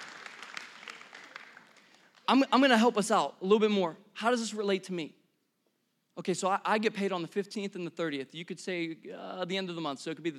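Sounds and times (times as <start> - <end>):
audience applause: 0.0 - 2.3
speech: 2.3 - 5.2, 6.2 - 10.3.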